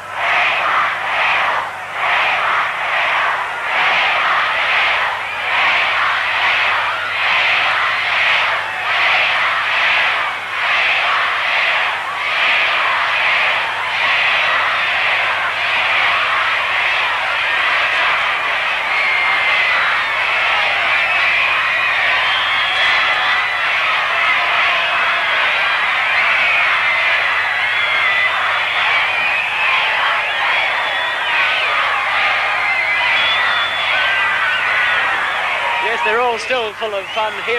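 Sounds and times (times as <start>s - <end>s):
crowd chanting for the band: 0.0s - 37.5s
speech: 36.8s - 37.5s.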